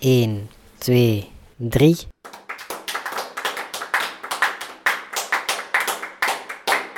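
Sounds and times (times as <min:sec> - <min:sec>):
speech: 0:00.0 - 0:02.1
group clapping hands together: 0:02.2 - 0:06.9.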